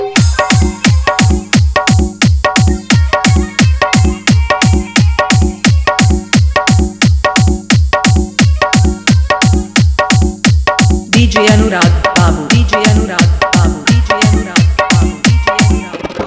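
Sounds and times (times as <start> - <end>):
Bhojpuri hard bass dance mix: 0.2 - 16.2.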